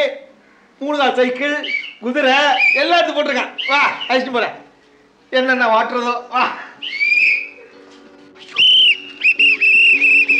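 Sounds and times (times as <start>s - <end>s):
speech: 0.8s - 4.6s, 5.3s - 7.0s
whistle blowing from swallowed whistle: 1.6s - 4.3s, 6.8s - 7.6s, 8.4s - 10.3s.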